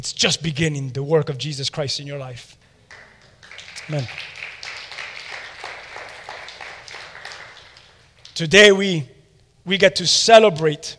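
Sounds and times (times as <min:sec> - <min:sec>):
speech: 0:00.0 - 0:02.6, 0:03.9 - 0:04.3, 0:08.4 - 0:10.9
crowd applauding: 0:02.9 - 0:08.5.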